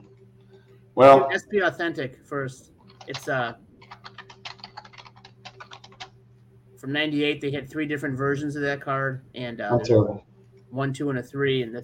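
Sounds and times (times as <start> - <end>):
low electrical hum: 0.0 - 11.8
speech: 1.0 - 3.6, 6.8 - 11.8
typing a name on a computer keyboard: 2.9 - 6.1.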